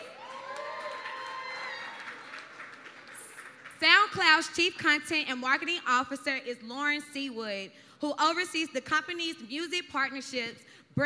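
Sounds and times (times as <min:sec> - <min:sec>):
audience cheering: 0:00.0 - 0:03.3
speech: 0:04.1 - 0:11.0.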